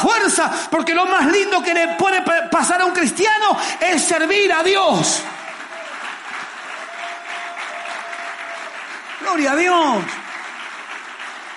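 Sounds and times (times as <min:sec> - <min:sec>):
speech: 0:00.4 - 0:05.4, 0:09.3 - 0:10.2
audience applause: 0:05.0 - 0:11.5.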